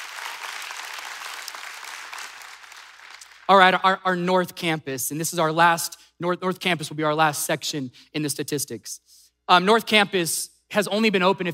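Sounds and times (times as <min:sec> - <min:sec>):
audience applause: 0:00.0 - 0:03.5
speech: 0:03.5 - 0:11.5.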